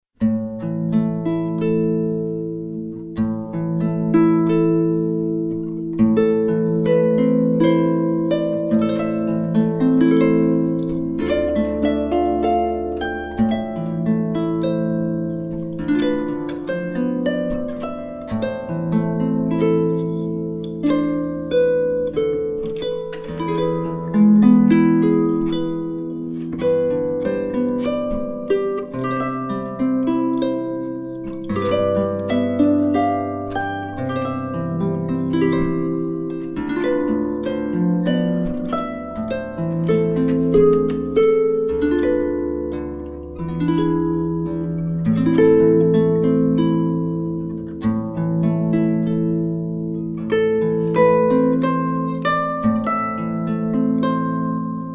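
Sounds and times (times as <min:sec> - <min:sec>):
Brazilian lullaby on harp: 0:00.1 - 0:54.9.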